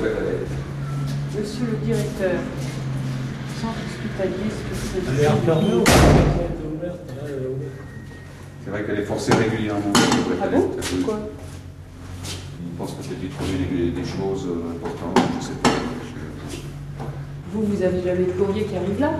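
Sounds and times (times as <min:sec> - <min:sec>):
people talking: 0:00.0 - 0:00.6, 0:01.3 - 0:02.7, 0:03.5 - 0:07.8, 0:08.6 - 0:11.4, 0:12.6 - 0:16.7, 0:17.4 - 0:19.1
apartment building door opening with a heavy clunk: 0:05.7 - 0:06.6.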